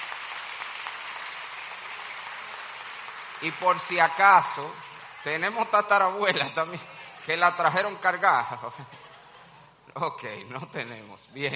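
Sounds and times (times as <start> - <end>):
audience applause: 0.0 - 8.2
speech: 3.4 - 9.1, 10.0 - 11.5
laughter: 6.2 - 9.8.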